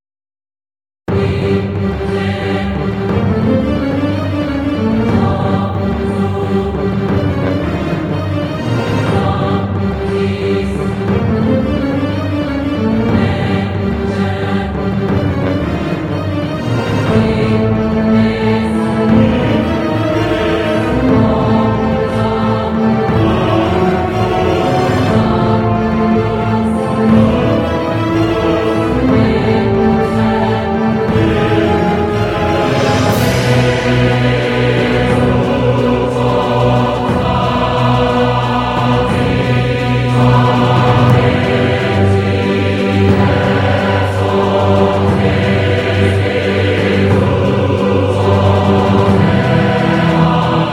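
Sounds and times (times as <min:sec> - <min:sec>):
choir singing: 0:01.1 - 0:50.7.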